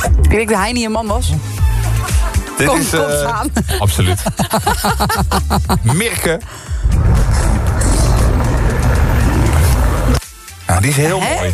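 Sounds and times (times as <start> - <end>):
speech: 0.3 - 1.6, 2.6 - 7.7, 10.8 - 11.5
laughter: 1.8 - 6.2
car road noise: 6.8 - 10.2.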